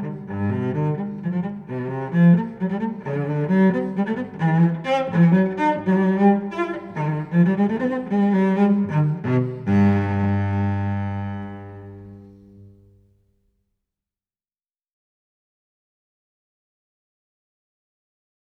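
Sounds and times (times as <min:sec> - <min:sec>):
solo cello playing a gigue: 0:00.0 - 0:13.2.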